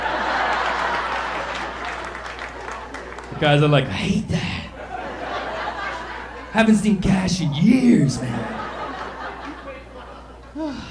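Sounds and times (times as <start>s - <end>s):
laughter: 0.0s - 3.2s, 4.0s - 10.8s
women in audience clapping: 0.5s - 3.4s
speech: 3.4s - 4.6s, 6.6s - 8.6s.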